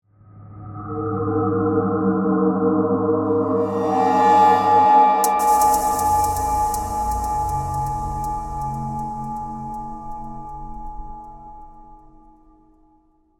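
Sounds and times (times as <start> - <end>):
eerie haunting horror music composition: 0.6 - 12.7.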